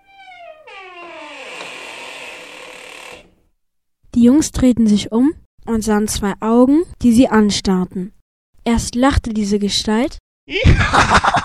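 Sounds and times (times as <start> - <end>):
door suddenly opening: 0.0 - 3.5
speech: 4.2 - 11.4
laughter: 10.6 - 11.4.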